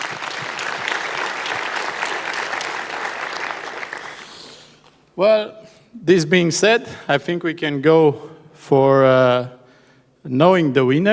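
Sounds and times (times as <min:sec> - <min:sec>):
audience applause: 0:00.0 - 0:04.8
speech: 0:05.2 - 0:09.6, 0:10.2 - 0:11.1.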